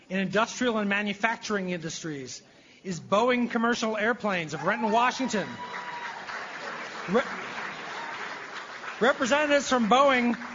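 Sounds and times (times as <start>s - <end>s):
speech: 0.1s - 5.9s, 7.1s - 7.4s, 9.0s - 10.5s
applause at a business awards ceremony: 4.7s - 10.5s.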